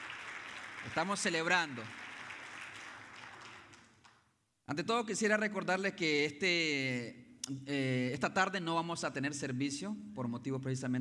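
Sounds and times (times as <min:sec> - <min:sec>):
audience applause: 0:00.0 - 0:04.2
speech: 0:00.8 - 0:02.0, 0:04.7 - 0:10.9.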